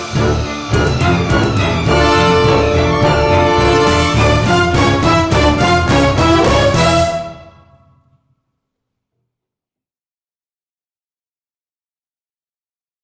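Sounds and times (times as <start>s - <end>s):
heavy metal music: 0.0s - 7.9s.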